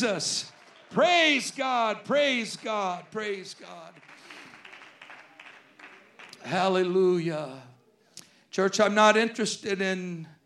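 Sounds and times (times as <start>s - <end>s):
speech: 0.0s - 4.2s, 6.4s - 7.7s, 8.6s - 10.4s
audience clapping hands: 0.0s - 7.0s.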